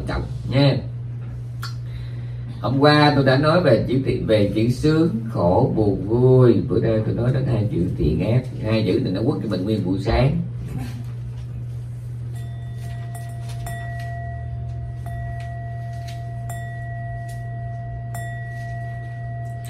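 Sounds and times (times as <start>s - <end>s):
steady low hum: 0.0s - 19.6s
speech: 0.1s - 0.9s, 2.6s - 11.0s
bell being struck: 12.2s - 19.6s.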